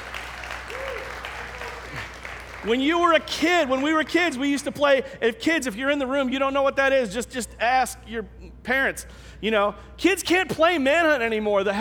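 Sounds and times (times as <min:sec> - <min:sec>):
audience clapping: 0:00.0 - 0:04.7
speech: 0:02.6 - 0:11.7.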